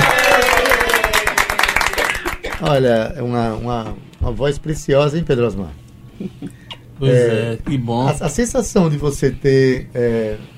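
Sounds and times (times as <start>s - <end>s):
audience applause: 0.0s - 2.6s
speech: 2.6s - 10.5s.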